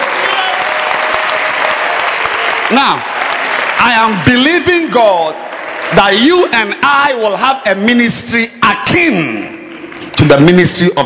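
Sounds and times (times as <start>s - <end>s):
audience clapping during a church sermon: 0.0s - 7.2s
speech: 2.7s - 3.1s, 3.8s - 9.5s, 10.2s - 11.0s.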